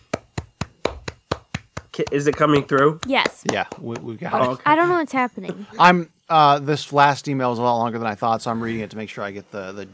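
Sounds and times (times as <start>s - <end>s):
hands clapping: 0.0s - 5.9s
speech: 2.0s - 9.9s
laughter: 2.2s - 9.9s.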